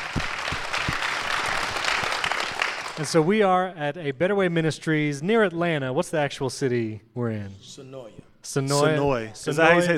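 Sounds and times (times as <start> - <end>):
audience applause: 0.0 - 3.1
speech: 3.0 - 9.9.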